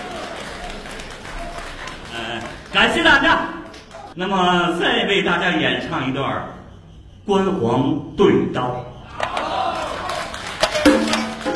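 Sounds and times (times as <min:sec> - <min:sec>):
faint audience applause at a Beijing opera and folk performance: 0:00.0 - 0:04.2, 0:09.6 - 0:11.5
speech: 0:02.2 - 0:03.6, 0:04.2 - 0:06.6, 0:07.3 - 0:08.9.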